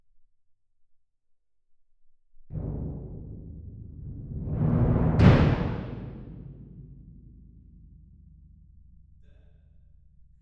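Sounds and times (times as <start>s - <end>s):
percussion: 2.5s - 10.4s.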